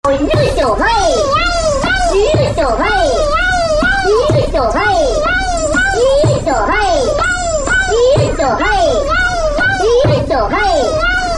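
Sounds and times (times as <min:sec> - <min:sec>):
voices chanting: 0:00.0 - 0:11.3.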